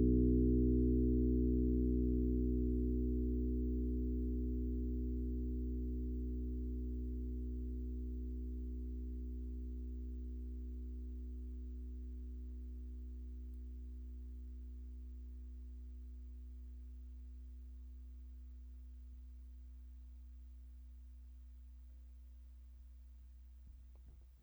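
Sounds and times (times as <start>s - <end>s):
electric bass guitar through a bridge pickup: 0.0s - 16.2s.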